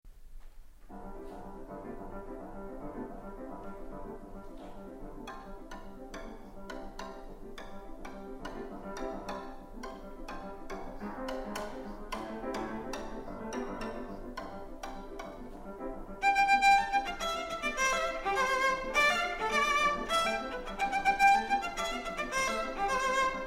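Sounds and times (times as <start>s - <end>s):
viola playing a rhumba: 0.9s - 23.4s.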